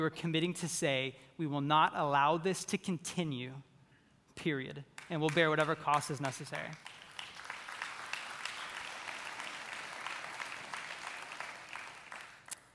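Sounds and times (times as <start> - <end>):
speech: 0.0 - 3.7, 4.4 - 6.9
audience clapping: 5.0 - 12.7.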